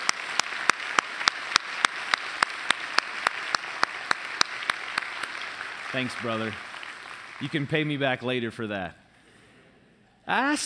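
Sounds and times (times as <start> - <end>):
applause for a man honoured at a community event: 0.0 - 8.2
speech: 5.9 - 6.7, 7.4 - 9.0, 10.3 - 10.6.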